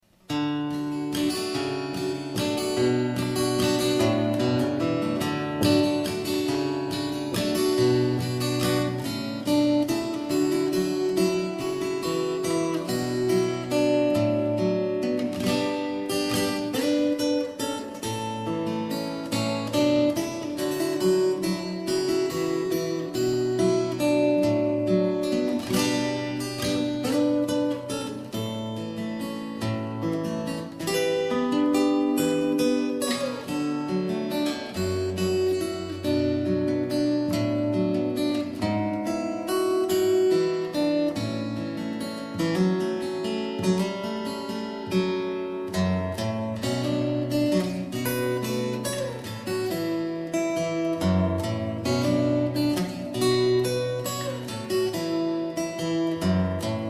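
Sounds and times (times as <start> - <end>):
fingerstyle guitar: 0.0 - 56.8.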